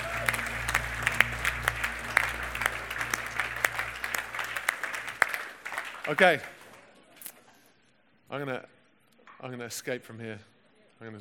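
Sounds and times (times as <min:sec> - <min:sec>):
audience clapping: 0:00.0 - 0:07.1
speech: 0:06.1 - 0:06.6, 0:08.3 - 0:08.8, 0:09.4 - 0:11.1.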